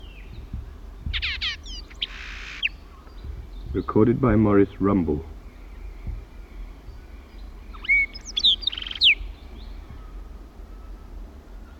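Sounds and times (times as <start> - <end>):
Horsefall Blackbird singing on Isla Victoria: 0.0 - 11.7
speech: 3.8 - 5.3.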